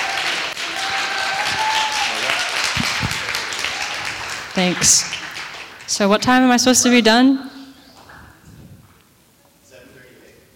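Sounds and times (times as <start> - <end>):
whistles and cheers: 0.0 - 4.2
crowd applauding: 0.0 - 6.5
speech: 4.6 - 5.2, 5.9 - 7.5.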